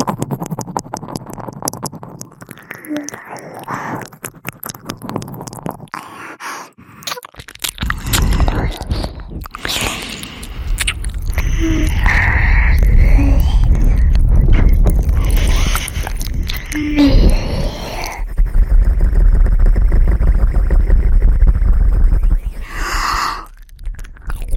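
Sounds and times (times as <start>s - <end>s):
ear eating wet crackly mouth clicks and smacks: 0.0s - 18.6s, 22.2s - 24.5s
heavy low rumble: 7.7s - 24.5s.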